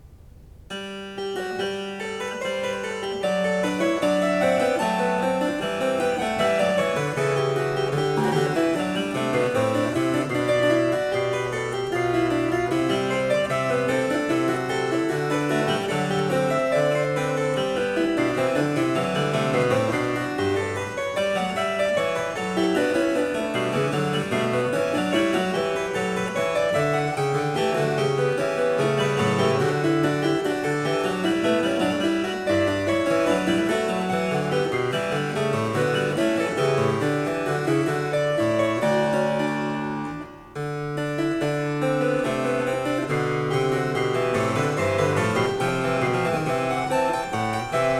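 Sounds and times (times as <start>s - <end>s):
harpsichord: 0.7s - 47.9s.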